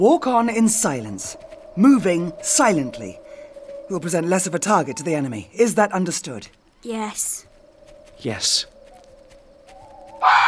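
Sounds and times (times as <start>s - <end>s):
speech: 0.0s - 3.2s, 3.9s - 7.5s, 8.2s - 8.7s, 10.2s - 10.4s
fox mating call scream: 4.0s - 5.6s, 10.1s - 10.4s.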